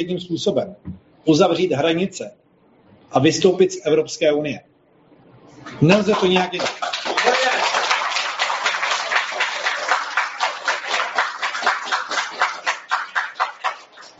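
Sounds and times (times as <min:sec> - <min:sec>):
speech: 0:00.0 - 0:02.4, 0:03.1 - 0:04.7, 0:05.6 - 0:07.4
audience applause: 0:05.7 - 0:14.1.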